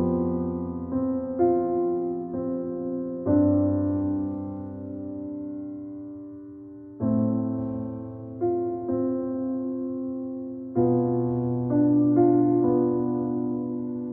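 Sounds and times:
relaxing piano music: 0.0 - 14.1.

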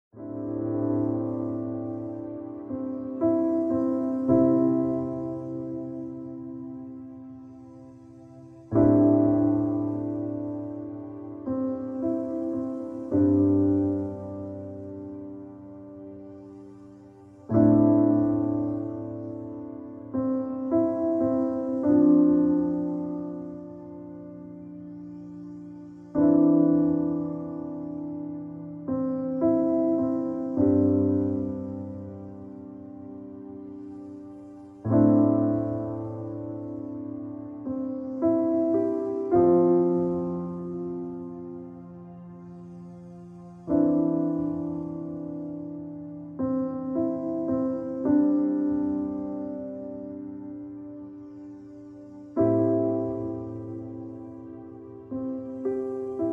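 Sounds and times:
relaxing piano: 0.0 - 56.3.

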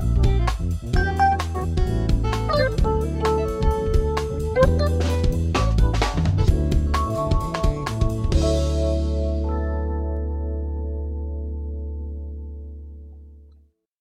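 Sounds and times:
smooth jazz music: 0.0 - 13.4.

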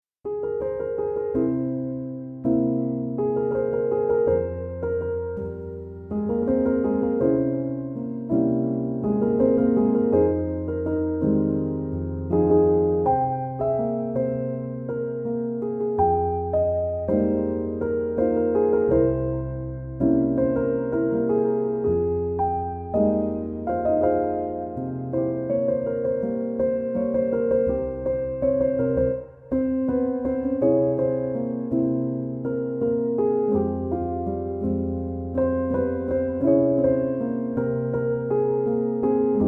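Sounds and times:
piano instrumental: 0.1 - 39.4.

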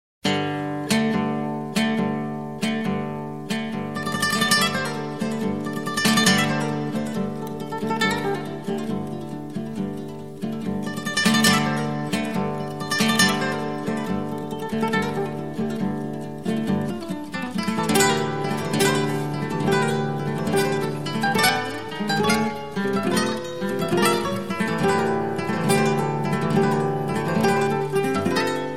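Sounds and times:
Spanish guitar: 0.2 - 28.7.

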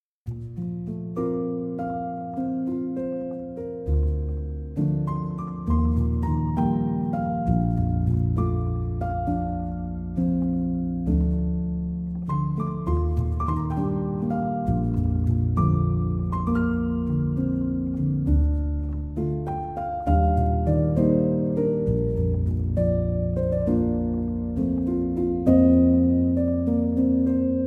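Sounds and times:
piano instrumental: 0.2 - 27.6.

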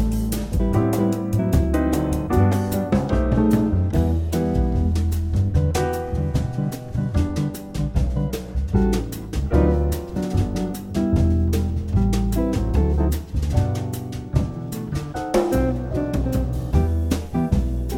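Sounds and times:
instrumental jazz music: 0.0 - 17.9.

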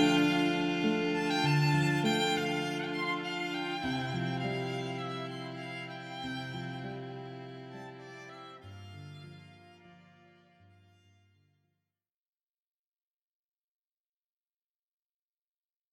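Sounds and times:
instrumental music: 0.0 - 11.4.

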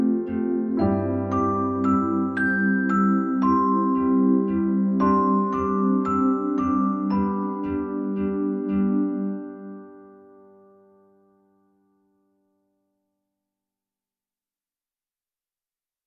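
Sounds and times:
relaxing piano music: 0.0 - 12.4.

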